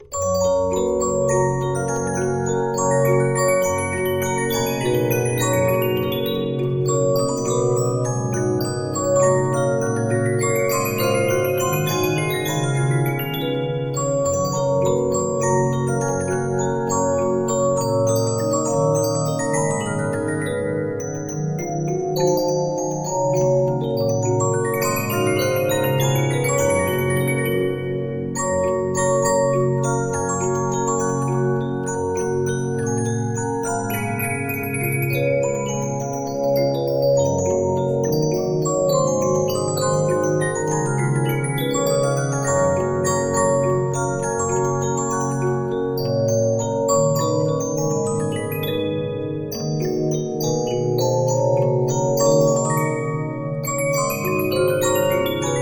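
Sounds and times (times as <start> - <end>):
Regina 15-inch disc music box: 0.0 - 55.6.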